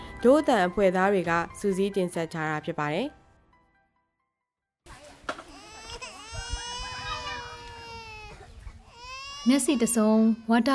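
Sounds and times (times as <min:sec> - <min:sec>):
speech: 0:00.2 - 0:03.2, 0:09.5 - 0:10.7
two-year-old child crying: 0:05.5 - 0:10.6.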